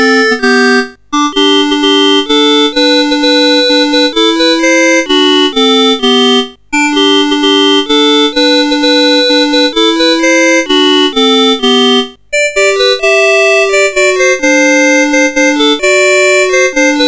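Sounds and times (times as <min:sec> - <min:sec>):
Christmas carol played on a CSG8580 sound chip: 0:00.0 - 0:17.0.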